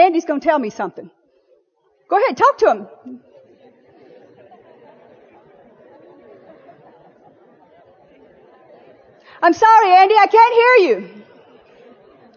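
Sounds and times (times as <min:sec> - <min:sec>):
audience members chatting with each other: 0:00.0 - 0:12.3
speech: 0:00.1 - 0:01.2, 0:02.1 - 0:03.3, 0:09.4 - 0:11.3
laughter: 0:03.1 - 0:09.3, 0:11.1 - 0:12.3.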